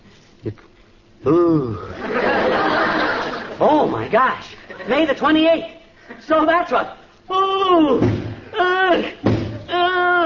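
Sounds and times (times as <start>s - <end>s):
speech: 0.4s - 2.3s, 3.6s - 10.2s
man groaning: 1.2s - 2.0s, 7.9s - 10.2s
laughter: 1.8s - 5.2s
man's head thudding against a wall: 9.2s - 9.6s.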